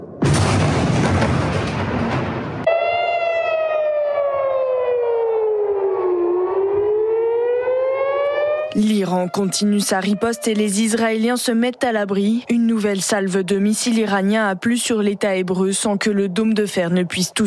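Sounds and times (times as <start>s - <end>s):
air raid alarm sirens: 0.0s - 11.5s
speech: 8.8s - 17.4s.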